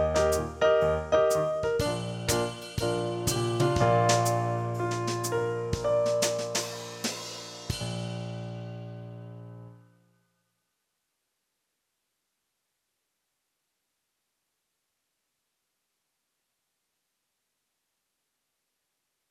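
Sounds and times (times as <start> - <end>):
improvised brass chords: 0.2 - 8.1.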